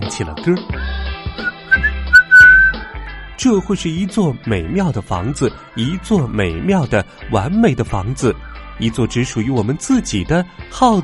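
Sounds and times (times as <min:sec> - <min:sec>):
speech: 0:00.1 - 0:00.8, 0:03.4 - 0:11.0
bright clear whistled melody: 0:01.4 - 0:02.9.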